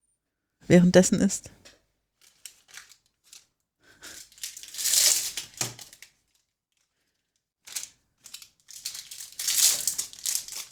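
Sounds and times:
speech: 0.7s - 1.7s
snack packaging crinkling as wrappers are removed: 2.2s - 6.3s, 7.7s - 10.7s.

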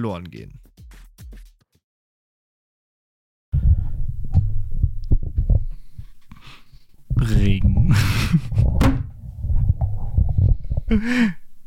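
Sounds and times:
speech: 0.0s - 0.7s, 10.9s - 11.4s
microphone being dropped: 4.1s - 5.8s, 7.1s - 10.8s.

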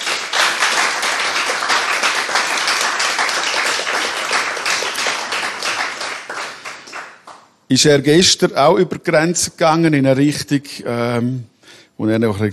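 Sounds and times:
warm applause from a crowd: 0.0s - 7.4s
speech: 7.7s - 12.5s.

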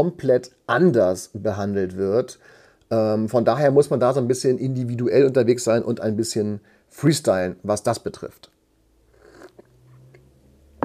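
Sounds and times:
speech: 0.0s - 8.6s
espresso sipping slurps: 9.1s - 10.2s.

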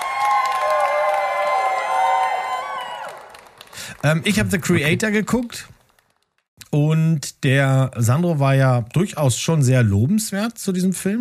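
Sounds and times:
short applause sound effect: 0.0s - 6.4s
speech: 4.0s - 5.8s, 6.7s - 11.1s.

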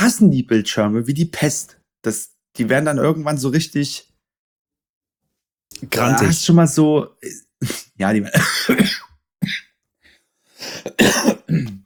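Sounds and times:
speech: 0.1s - 4.1s, 5.8s - 9.0s
smoker's harsh morning cough: 7.2s - 9.7s, 10.6s - 11.8s.

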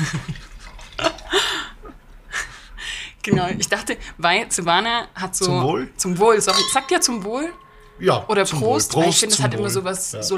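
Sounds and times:
speech: 0.0s - 0.4s, 3.2s - 10.3s
white wine pouring into a glass: 0.3s - 1.4s.

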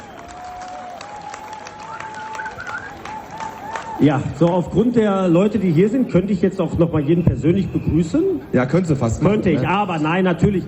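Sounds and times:
crowd applause: 0.0s - 4.8s
faint sustained whistle-like tone: 1.8s - 3.0s
speech: 4.0s - 10.6s.

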